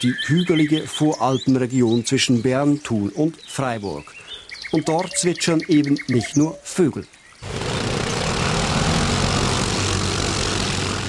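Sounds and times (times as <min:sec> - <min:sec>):
speech: 0:00.0 - 0:07.6
quad bike engine droning: 0:07.4 - 0:11.0.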